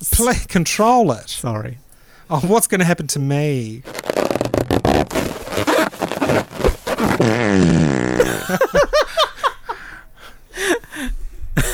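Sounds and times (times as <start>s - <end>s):
speech: 0.2s - 5.7s
loud sputtering fart: 3.8s - 8.3s
laughter: 8.2s - 9.8s.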